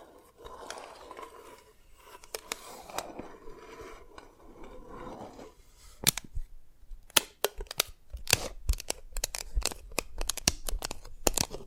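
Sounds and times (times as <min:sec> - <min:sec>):
soft scraping of dalgona candy: 0:00.0 - 0:06.0
dalgona candy being tapped and cracked: 0:07.1 - 0:11.6.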